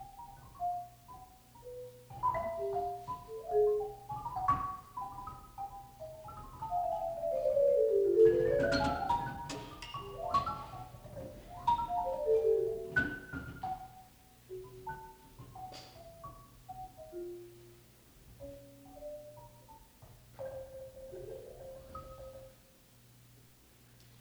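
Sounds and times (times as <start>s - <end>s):
canonic percussion duet: 2.1s - 13.7s.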